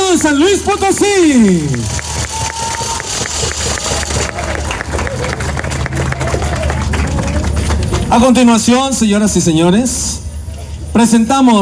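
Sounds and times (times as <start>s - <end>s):
audience applause: 0.0s - 8.6s
speech: 0.2s - 2.0s, 8.2s - 10.2s, 11.0s - 11.6s.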